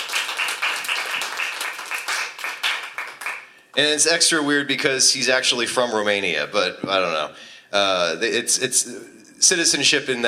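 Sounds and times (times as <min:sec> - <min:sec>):
audience applause: 0:00.0 - 0:03.5
speech: 0:03.8 - 0:10.2.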